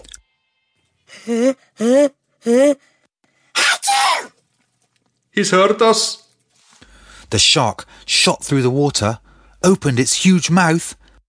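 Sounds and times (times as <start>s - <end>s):
speech: 1.2s - 2.8s, 5.4s - 6.2s, 7.3s - 11.0s
voice acting out a huge sneeze: 3.6s - 4.4s.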